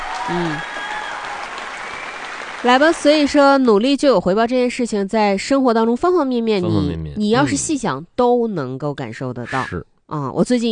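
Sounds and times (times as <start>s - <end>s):
applause for colleagues at a department sports display: 0.0s - 3.4s
speech: 0.3s - 0.8s, 2.6s - 10.7s
person's voice: 6.1s - 7.9s, 9.4s - 9.8s.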